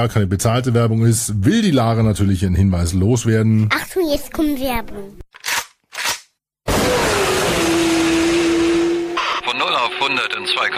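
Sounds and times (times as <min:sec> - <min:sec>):
speech: 0:00.0 - 0:05.2, 0:09.8 - 0:10.7
sport motorcycle engine revving and accelerating: 0:06.7 - 0:10.7
whining tone: 0:06.7 - 0:10.7.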